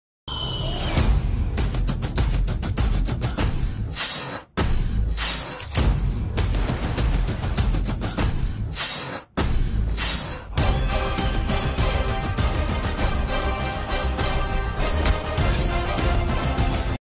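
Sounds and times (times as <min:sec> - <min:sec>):
trailer background music: 0:00.3 - 0:17.0.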